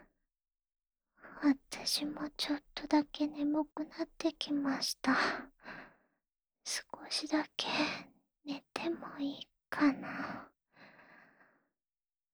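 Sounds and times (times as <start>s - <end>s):
ASMR sleep voice: 1.5s - 5.3s, 8.5s - 10.1s.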